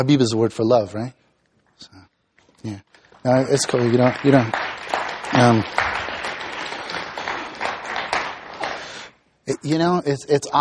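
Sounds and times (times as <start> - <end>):
speech: 0.0 - 1.2, 1.8 - 6.0, 9.5 - 10.5
clapping: 2.9 - 9.1.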